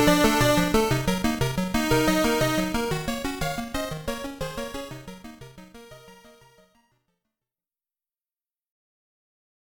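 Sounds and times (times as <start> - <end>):
game background music: 0.0 - 6.9.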